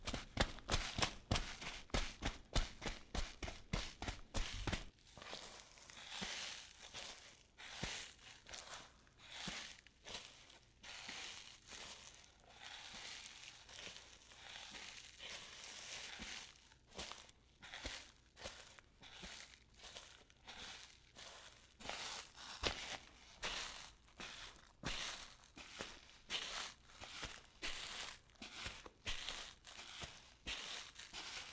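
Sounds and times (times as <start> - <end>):
boot footsteps on sand: 0.0 - 7.2, 14.6 - 31.5
barefoot footsteps on sand: 0.0 - 31.5.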